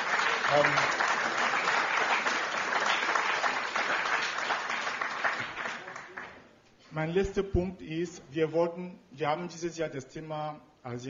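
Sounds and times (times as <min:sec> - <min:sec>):
audience applause: 0:00.0 - 0:06.4
speech: 0:00.5 - 0:01.1, 0:07.0 - 0:11.0.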